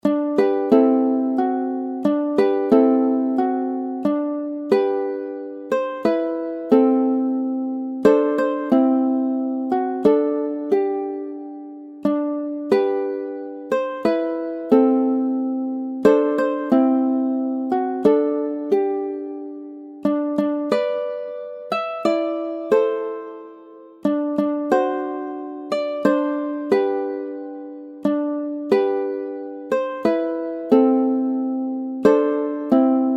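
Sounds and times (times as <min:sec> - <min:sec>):
ukulele: 0:00.0 - 0:33.1.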